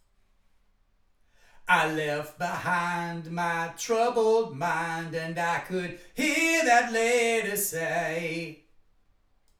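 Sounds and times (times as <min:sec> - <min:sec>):
person singing: 0:01.7 - 0:08.6.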